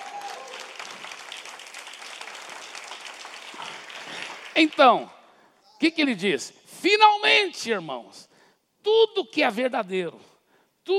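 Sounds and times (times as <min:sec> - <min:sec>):
audience applause: 0:00.0 - 0:04.8
speech: 0:04.6 - 0:05.2, 0:05.8 - 0:10.3.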